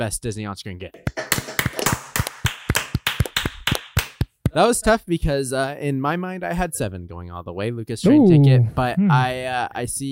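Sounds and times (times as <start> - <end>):
speech: 0.0 - 1.2, 4.5 - 10.1
hosts clapping for the winner: 1.0 - 4.5.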